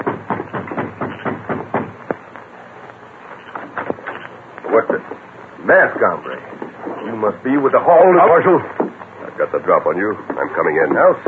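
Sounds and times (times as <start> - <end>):
knocking on a wooden front door: 0.0 - 2.0
speech: 4.8 - 8.8, 9.4 - 11.2.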